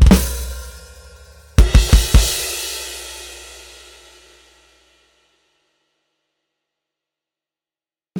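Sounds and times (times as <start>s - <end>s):
Swiss cymbal: 0.1s - 5.6s.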